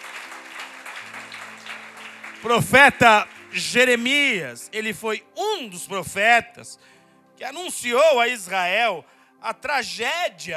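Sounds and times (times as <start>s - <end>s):
audience applause: 0.0s - 4.0s
speech: 2.4s - 10.5s.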